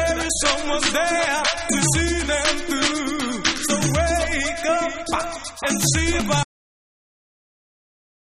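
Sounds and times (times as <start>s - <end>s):
a cappella singing: 0.0s - 6.5s.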